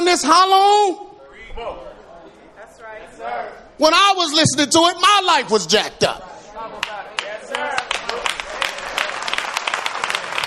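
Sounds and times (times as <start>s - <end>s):
speech: 0.1s - 1.9s, 2.8s - 7.1s
audience clapping: 6.8s - 10.4s.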